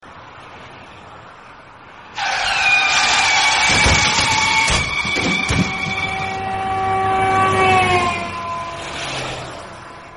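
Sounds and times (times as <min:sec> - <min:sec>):
car crash: 0:02.2 - 0:09.8.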